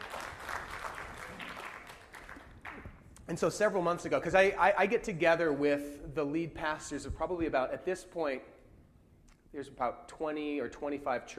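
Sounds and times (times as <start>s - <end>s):
audience clapping: 0.0s - 3.2s
speech: 3.3s - 8.5s, 9.5s - 11.3s.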